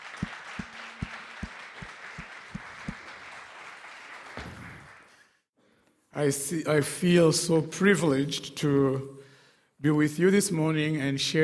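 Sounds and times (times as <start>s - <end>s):
applause at a church service welcoming a guest speaker: 0.0s - 5.4s
speech: 6.2s - 9.2s, 9.8s - 11.4s.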